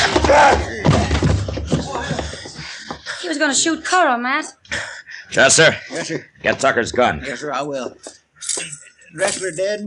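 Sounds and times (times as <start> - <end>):
man being punched and knocked down in a fight: 0.0 - 2.6
men's voices: 0.0 - 3.2, 4.7 - 9.8
speech: 3.4 - 9.8.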